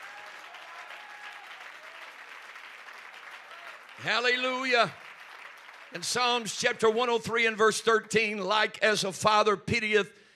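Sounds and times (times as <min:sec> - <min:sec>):
audience applause: 0:00.0 - 0:07.0
speech: 0:04.0 - 0:05.0, 0:05.9 - 0:10.2.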